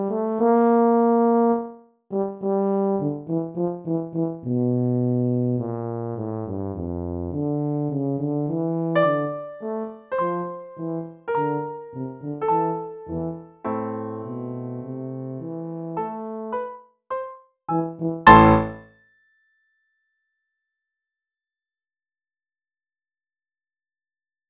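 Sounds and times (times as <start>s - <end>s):
tuba: 0.0s - 16.6s, 17.7s - 18.8s.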